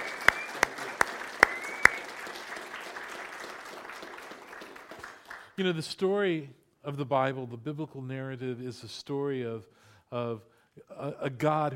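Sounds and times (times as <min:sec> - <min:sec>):
audience applause: 0:00.0 - 0:05.6
speech: 0:05.6 - 0:11.7.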